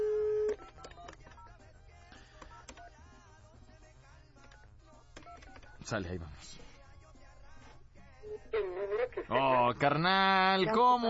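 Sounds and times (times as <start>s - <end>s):
telephone tone: 0.0s - 1.2s
dialing beeps: 0.0s - 1.6s
speech: 5.9s - 6.7s, 9.3s - 11.0s.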